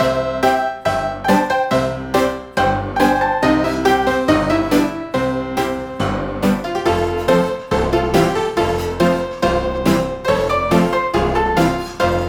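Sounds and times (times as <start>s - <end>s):
home ragtime music: 0.0s - 12.2s.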